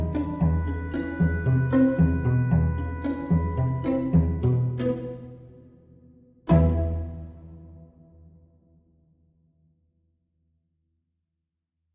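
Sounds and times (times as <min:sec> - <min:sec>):
game music with many instruments: 0:00.0 - 0:05.6, 0:06.5 - 0:07.8.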